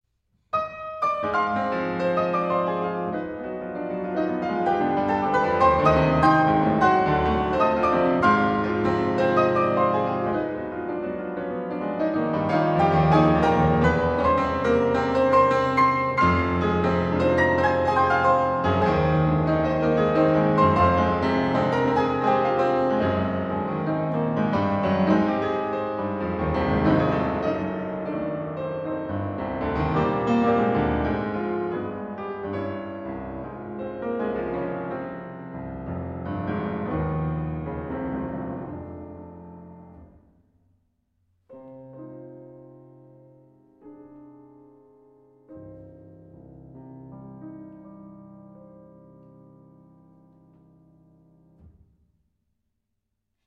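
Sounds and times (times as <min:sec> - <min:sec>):
prelude in C minor: 0:00.5 - 0:40.5, 0:41.5 - 0:51.9.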